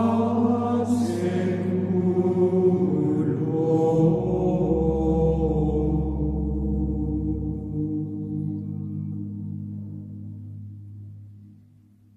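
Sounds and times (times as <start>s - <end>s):
Gregorian chant: 0.0s - 9.2s.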